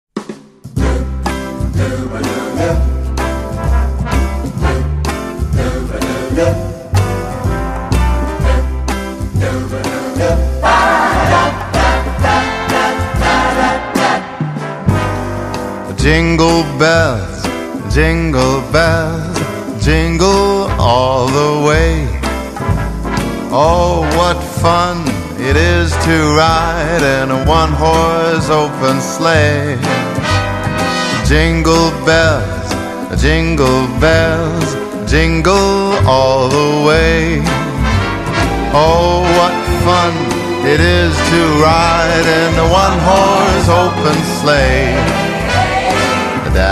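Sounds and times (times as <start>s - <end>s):
Christmas song: 0.6s - 46.7s.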